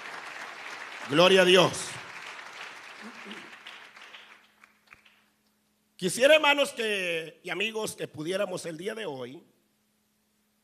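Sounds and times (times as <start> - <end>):
audience applause: 0.0 - 5.2
speech: 1.1 - 1.9, 6.0 - 9.5.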